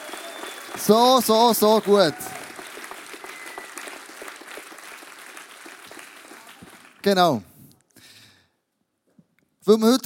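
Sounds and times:
audience applause: 0.0s - 7.1s
speech: 0.8s - 2.3s, 7.0s - 7.5s, 9.7s - 10.0s.

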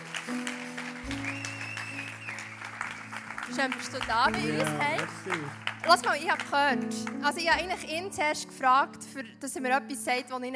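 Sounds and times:
audience clapping: 0.0s - 8.0s
speech: 3.6s - 10.5s.

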